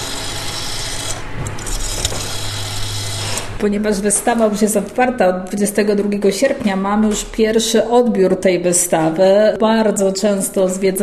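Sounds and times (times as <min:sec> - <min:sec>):
rotary telephone dial turning and spinning back: 0:00.0 - 0:03.6
speech: 0:03.6 - 0:11.0.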